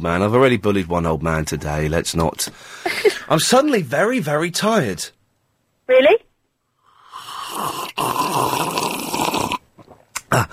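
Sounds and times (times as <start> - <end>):
speech: 0.0 - 5.2, 5.9 - 6.2
slurp: 7.1 - 10.3.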